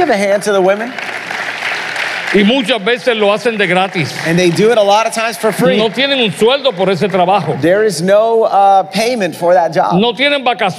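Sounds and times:
speech: 0.0 - 1.1, 2.3 - 10.7
audience applause: 0.0 - 8.0.

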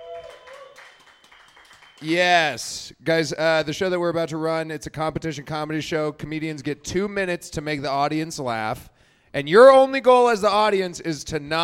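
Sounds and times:
audience round of applause: 0.0 - 2.1
speech: 2.0 - 11.6.

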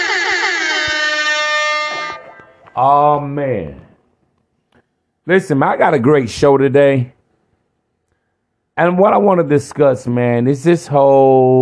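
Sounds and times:
air horn alarm sound effect: 0.0 - 2.6
speech: 2.8 - 3.9, 5.3 - 7.2, 8.8 - 11.6.

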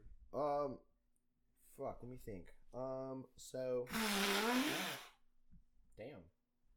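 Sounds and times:
speech: 0.3 - 0.9, 1.8 - 5.1, 6.0 - 6.4
nose blowing: 3.9 - 5.2.

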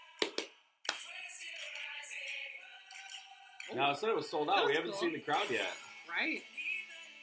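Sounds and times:
rhythmic hand claps in a music recording: 0.0 - 3.8
speech: 3.7 - 6.6.

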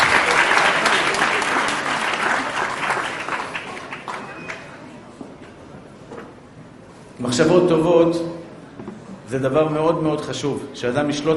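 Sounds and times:
audience applause: 0.0 - 4.8
speech: 7.3 - 8.3, 9.3 - 11.3.

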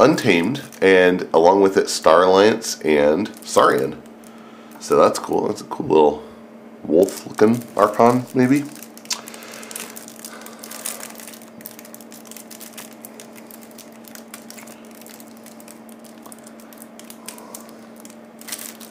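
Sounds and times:
speech: 0.0 - 4.0, 4.8 - 6.2, 6.8 - 8.8
card pack wrapper torn open: 3.2 - 4.3, 7.0 - 18.9.

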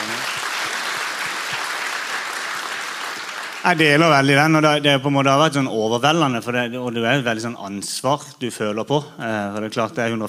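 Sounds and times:
applause: 0.0 - 4.3
speech: 3.6 - 10.2.

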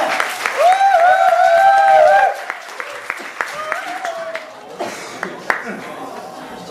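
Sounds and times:
voices cheering: 0.0 - 4.6
audience applause: 0.0 - 6.0.

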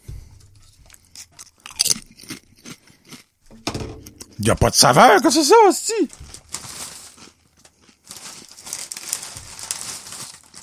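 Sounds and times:
crunchy bites and chewing of sour cream and onion potato chips: 0.9 - 3.3, 5.9 - 10.6
speech: 4.4 - 6.2.

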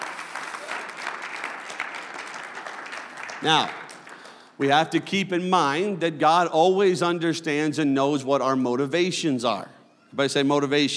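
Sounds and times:
audience hand clapping: 0.0 - 4.7
speech: 3.4 - 3.8, 4.6 - 10.9.

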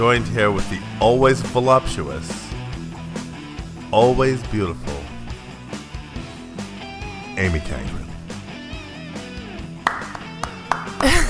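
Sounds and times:
speech: 0.0 - 2.5, 3.9 - 5.0, 7.4 - 8.0
clapping: 9.7 - 11.2.

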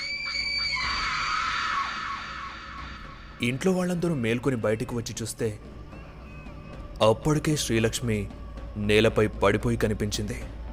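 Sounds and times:
woman screaming in fear: 0.0 - 3.4
speech: 3.4 - 5.7, 7.0 - 10.6.

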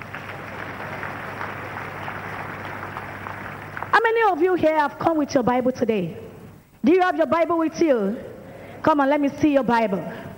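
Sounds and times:
audience clapping: 0.0 - 4.6
speech: 4.0 - 6.2, 6.8 - 10.2.

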